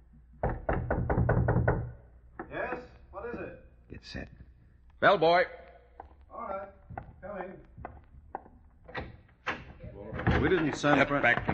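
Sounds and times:
knocking on a door: 0.4 - 2.8, 6.8 - 11.5
speech: 4.0 - 4.4, 5.0 - 5.6, 10.4 - 11.5.

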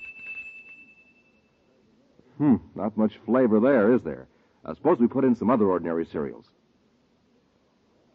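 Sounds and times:
faint bell ring from a testing machine: 0.0 - 1.9
speech: 2.4 - 6.6.

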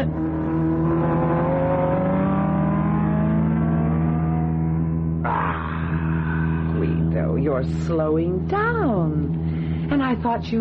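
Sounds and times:
race car engine roaring as it accelerates: 0.0 - 10.2
speech: 7.6 - 10.5.

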